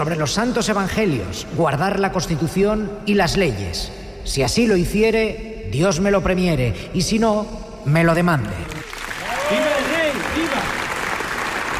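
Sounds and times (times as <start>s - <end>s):
speech: 0.0s - 8.7s
ovation applause in parliament hall: 8.7s - 11.7s.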